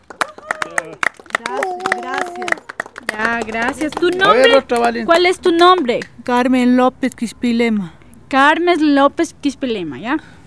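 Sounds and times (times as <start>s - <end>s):
audience applause: 0.0s - 5.8s
speech: 3.2s - 10.4s.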